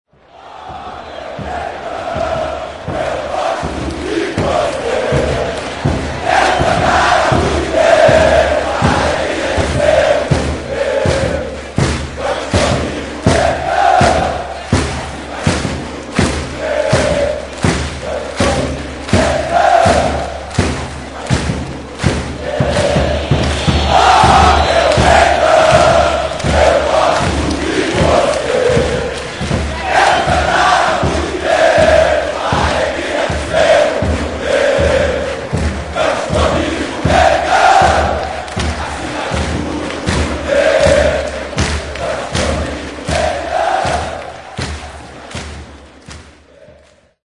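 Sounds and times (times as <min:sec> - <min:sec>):
football fans chanting: 0:00.1 - 0:47.2.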